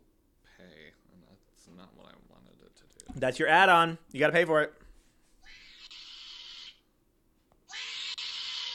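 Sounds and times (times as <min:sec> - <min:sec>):
speech: 0:00.9 - 0:04.8
possum hissing screeches in a game: 0:05.4 - 0:06.9, 0:07.7 - 0:08.7.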